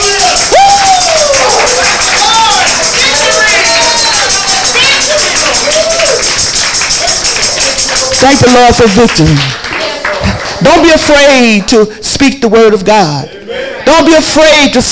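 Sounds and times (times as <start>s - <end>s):
audience clapping: 0.0s - 11.9s
speech: 8.2s - 9.6s, 10.6s - 14.9s.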